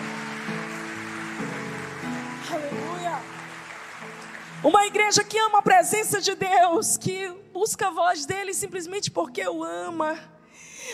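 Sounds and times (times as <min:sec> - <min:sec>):
audience applauding: 0:00.0 - 0:05.6
speech: 0:04.6 - 0:10.3.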